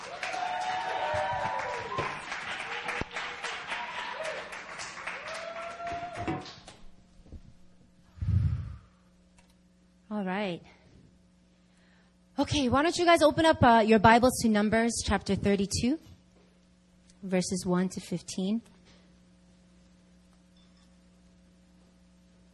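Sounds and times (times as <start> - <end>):
church congregation clapping to welcome a woman preacher: 0.0 - 6.8
speech: 10.4 - 10.8, 12.4 - 16.1, 17.2 - 18.7.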